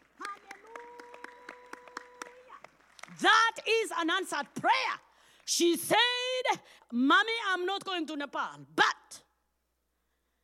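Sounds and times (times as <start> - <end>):
audience clapping in unison: 0.0 - 5.8
speech: 3.2 - 9.2.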